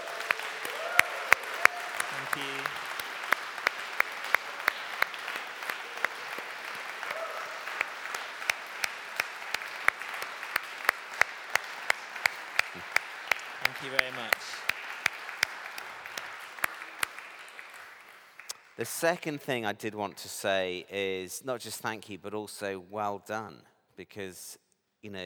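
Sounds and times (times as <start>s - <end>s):
group clapping: 0.0s - 19.2s
speech: 2.3s - 2.8s, 18.8s - 25.2s.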